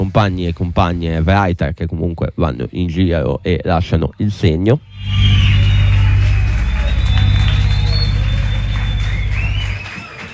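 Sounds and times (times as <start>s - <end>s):
speech: 0.2s - 5.6s
audience applause: 5.1s - 10.3s.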